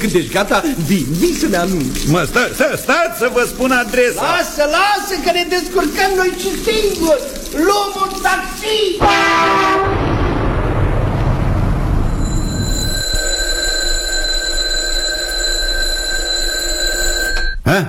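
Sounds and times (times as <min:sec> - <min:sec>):
speech: 0:00.0 - 0:10.1, 0:17.7 - 0:17.8
rushing rumbling noise: 0:09.6 - 0:13.2
alarm clock ringing: 0:12.2 - 0:17.6.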